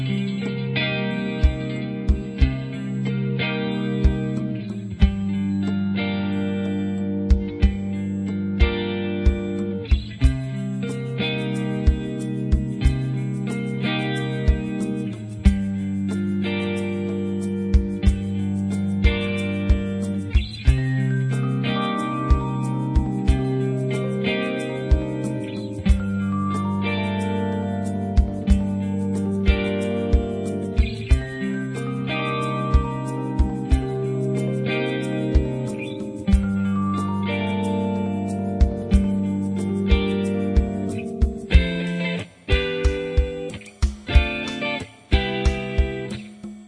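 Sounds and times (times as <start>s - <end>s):
romantic music: 0.1s - 46.2s.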